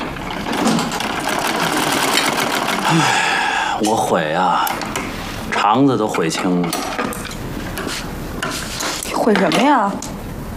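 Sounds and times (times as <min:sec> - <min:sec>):
treadle sewing machine running: 0:00.0 - 0:03.4
speech: 0:02.9 - 0:03.2, 0:03.8 - 0:04.9, 0:05.5 - 0:07.0, 0:09.2 - 0:10.1.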